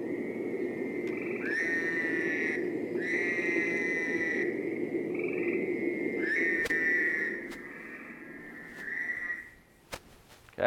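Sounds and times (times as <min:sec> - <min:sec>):
Fowler's toad buzzy calls: 0:00.2 - 0:10.5.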